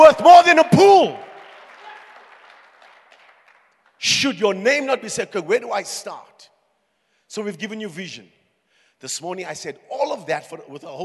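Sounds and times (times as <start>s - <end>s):
speech: 0.1s - 1.2s, 4.0s - 6.5s, 7.3s - 8.4s, 9.0s - 11.0s
church audience clapping hands: 0.8s - 4.2s.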